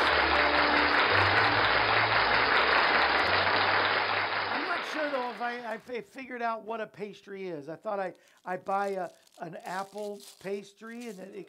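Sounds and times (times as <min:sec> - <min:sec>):
applause sound effect: 0:00.0 - 0:05.8
speech: 0:05.8 - 0:11.4.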